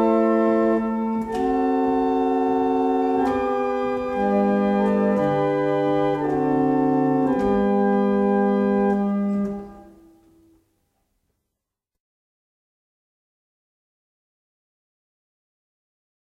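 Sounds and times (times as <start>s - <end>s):
barrel organs playing a double chant: 0.0s - 10.6s.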